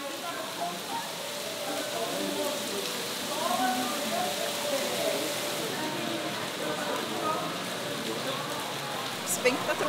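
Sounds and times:
faint indistinct voices murmuring: 0.0 - 9.8
heavy rain pouring: 0.0 - 9.8.

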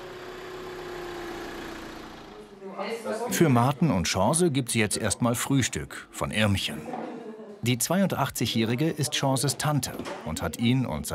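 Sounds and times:
bakery delivery van engines rumbling as they drive off: 0.0 - 2.6
speech: 2.8 - 11.1.

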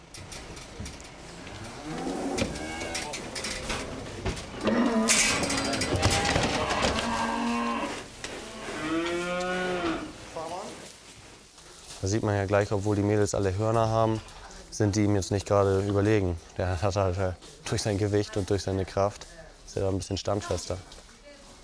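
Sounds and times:
heifers and bull lowing on a farm on Amrum: 1.4 - 10.2
speech: 12.2 - 21.0.

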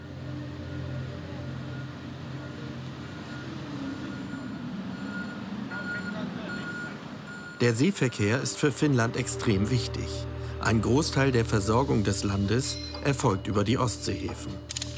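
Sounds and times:
heavy trucks loading a cargo ferry: 0.0 - 14.6
truck reversing beeps: 3.1 - 8.5
speech: 7.6 - 14.9.

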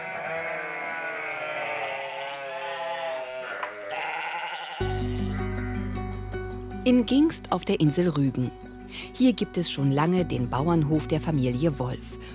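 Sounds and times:
sheep and lambs bleating: 0.0 - 5.7
speech: 6.8 - 12.3.

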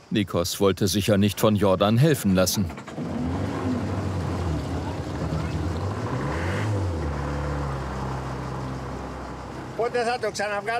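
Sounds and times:
speech: 0.1 - 3.2, 9.9 - 10.7
boat engine droning: 2.7 - 10.7.

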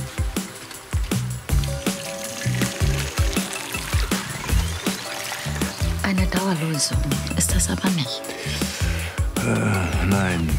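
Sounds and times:
hot water sloshing in a bowl: 0.0 - 7.4
speech: 6.5 - 10.5.

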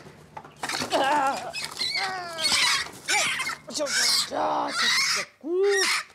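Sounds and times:
brooding hen squawking in alarm: 1.2 - 6.1
speech: 3.8 - 6.1.

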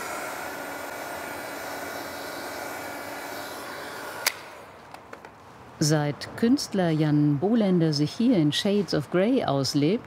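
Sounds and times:
hot air blower working on surface: 0.0 - 4.9
hot air blower switch click: 3.9 - 5.0
speech: 5.8 - 10.0.

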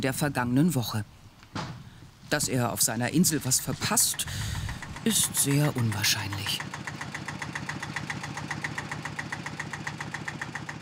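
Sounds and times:
speech: 0.0 - 1.6, 2.3 - 6.9
tractor engine idling: 2.5 - 10.8.

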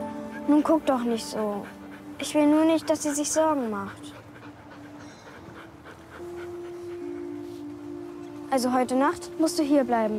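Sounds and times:
dog panting: 0.0 - 8.8
sad dog whimpering: 0.1 - 7.4
speech: 0.5 - 4.2, 8.5 - 10.1.

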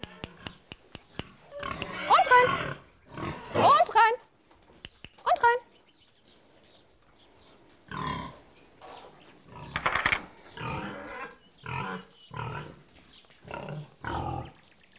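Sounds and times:
pigs grunting: 0.0 - 3.9, 7.9 - 14.6.

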